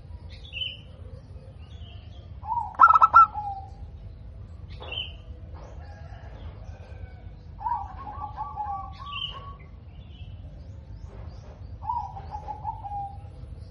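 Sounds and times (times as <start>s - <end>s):
other birds chirping and trilling: 0.0s - 13.6s
zebra dove cooing: 2.4s - 3.8s, 7.6s - 9.6s, 11.8s - 13.3s.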